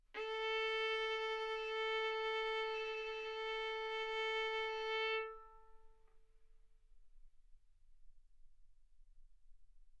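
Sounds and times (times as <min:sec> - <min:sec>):
violin arco on A string: 0:00.1 - 0:06.1.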